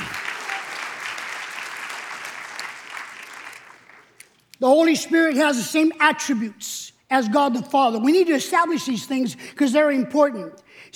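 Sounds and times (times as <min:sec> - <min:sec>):
audience applauding: 0:00.0 - 0:04.2
speech: 0:04.6 - 0:10.9.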